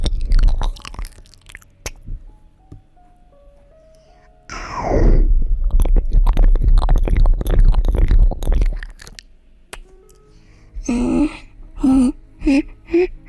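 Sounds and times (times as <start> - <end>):
ear eating wet crackling mouth sounds, smacking and slurping: 0.0 - 2.0, 4.5 - 10.2
breathy gasping vocal bursts: 10.3 - 13.2.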